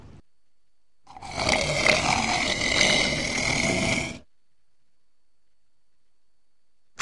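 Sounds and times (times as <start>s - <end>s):
walrus roaring: 1.1s - 4.2s.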